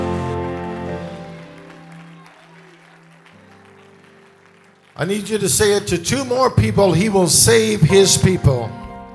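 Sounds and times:
audience clapping hands: 0.1s - 6.8s
speech: 5.0s - 8.8s.

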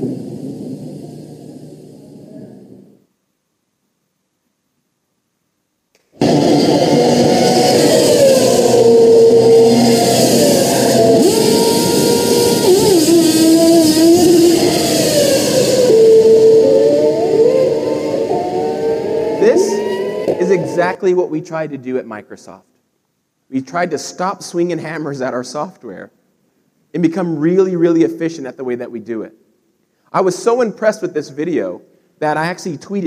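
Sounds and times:
racing car engine roaring and pulling away after pit stop: 6.2s - 20.9s
speech: 21.0s - 22.7s, 23.5s - 26.2s, 26.9s - 29.4s, 30.1s - 33.0s.

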